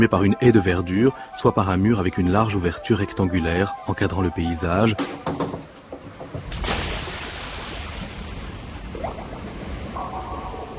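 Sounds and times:
speech: 0.0 - 5.5
water splash in a swimming pool: 6.5 - 10.6.

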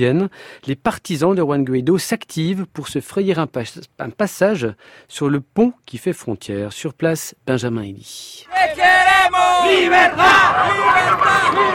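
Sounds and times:
speech: 0.0 - 11.7
crowd chanting and cheering at border bridge: 8.5 - 11.7.

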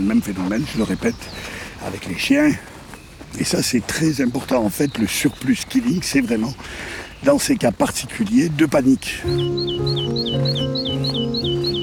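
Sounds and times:
great tit saw-like song: 0.0 - 11.8
speech: 0.1 - 2.7, 3.3 - 10.9.

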